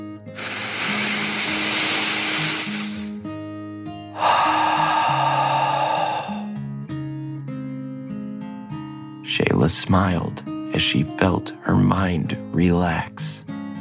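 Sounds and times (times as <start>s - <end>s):
airy exhale: 0.3s - 3.2s, 4.1s - 6.6s
deep breath in: 0.4s - 3.2s, 4.1s - 6.6s
speech: 9.7s - 13.4s.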